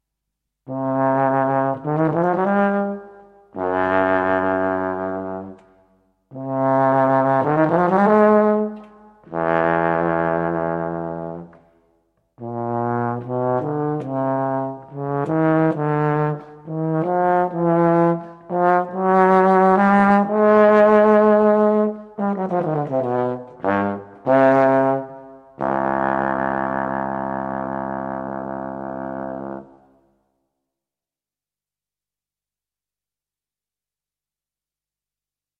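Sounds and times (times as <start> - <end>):
tuba: 0.6 - 5.7, 6.3 - 11.8, 12.4 - 30.1.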